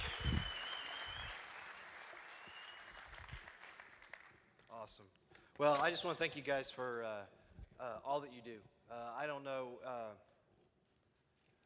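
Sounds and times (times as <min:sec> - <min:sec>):
high sustained whistle: 0:00.0 - 0:01.5, 0:02.3 - 0:03.0
audience applause at a Royal Rangers gathering: 0:00.0 - 0:04.4
speech: 0:04.8 - 0:10.3.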